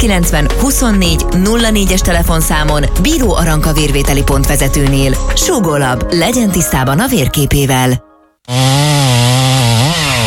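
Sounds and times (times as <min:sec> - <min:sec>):
speech: 0:00.0 - 0:09.3
chainsaw cutting down a pine tree: 0:08.5 - 0:10.2.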